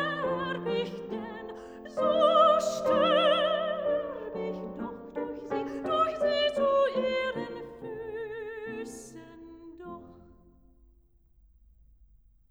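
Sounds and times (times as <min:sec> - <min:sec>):
person singing: 0:00.0 - 0:09.5
piano: 0:00.0 - 0:11.0.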